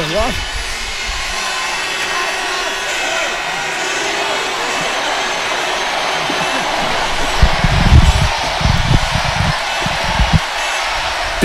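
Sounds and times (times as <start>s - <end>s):
crowd cheering and making noise: 0.0s - 11.4s
laughter: 1.4s - 11.4s
low thumping bursts: 6.6s - 10.5s.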